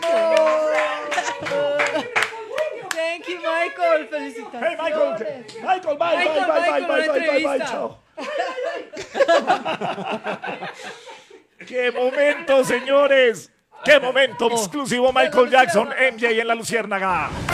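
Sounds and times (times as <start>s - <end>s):
audience clapping for a guest: 0.0s - 3.1s, 17.0s - 17.5s
people laughing: 0.0s - 3.5s, 4.6s - 17.5s
excited voices shouting: 0.0s - 3.9s, 12.0s - 17.5s
speech: 3.7s - 8.0s, 9.2s - 11.1s, 11.7s - 17.5s.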